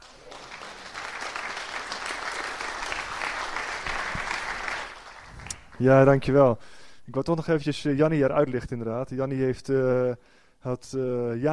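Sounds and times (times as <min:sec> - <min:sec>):
audience applause: 0:00.0 - 0:05.8
speech: 0:05.8 - 0:11.5.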